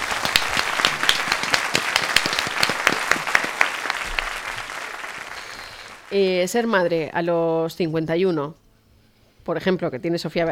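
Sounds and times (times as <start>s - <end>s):
studio audience applause: 0.0s - 6.2s
speech: 6.1s - 8.6s, 9.5s - 10.5s.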